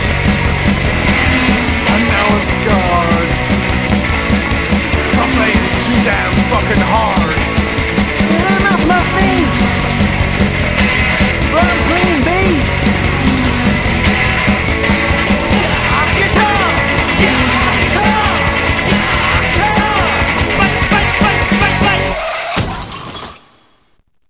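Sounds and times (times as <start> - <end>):
guitar: 0.0 - 22.4.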